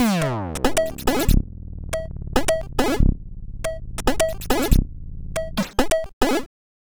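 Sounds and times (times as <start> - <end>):
sound effect loops: 0.0 - 1.4, 2.0 - 3.1, 3.7 - 4.8, 5.4 - 6.4.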